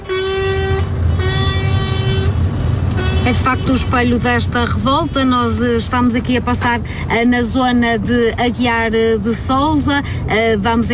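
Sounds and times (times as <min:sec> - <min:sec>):
car horns honking in a slow-moving protest convoy near Aguiar de Sousa: 0:00.0 - 0:06.5
low vehicle rumble: 0:00.0 - 0:10.9
speech: 0:03.3 - 0:10.9.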